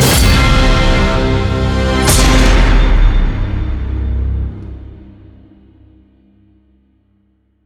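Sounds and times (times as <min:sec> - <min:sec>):
big win ending jingle: 0:00.0 - 0:04.8.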